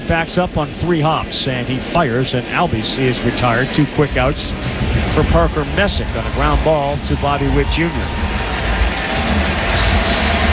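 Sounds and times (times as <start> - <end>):
speech: 0.1 - 8.4
baseball stadium crowd roaring: 4.6 - 10.5.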